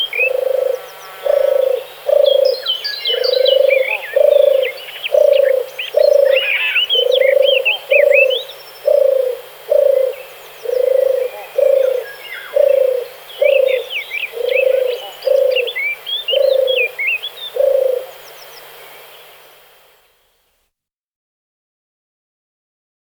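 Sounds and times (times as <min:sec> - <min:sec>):
birds: 0:00.0 - 0:20.1
turtle dove: 0:00.0 - 0:20.4.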